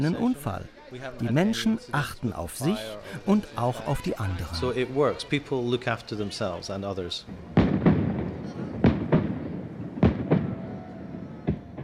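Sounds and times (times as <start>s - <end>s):
speech: 0.0s - 7.6s
crowd murmur and chatter: 2.3s - 6.6s, 7.2s - 11.8s
fireworks exploding: 7.4s - 11.8s.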